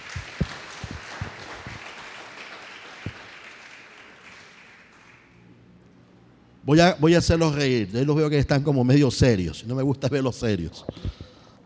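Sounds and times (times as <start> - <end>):
audience applause: 0.0 - 5.3
speech: 6.7 - 11.3.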